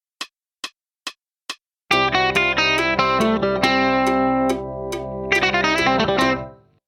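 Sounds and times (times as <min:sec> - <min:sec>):
musical lick: 0:01.9 - 0:06.6.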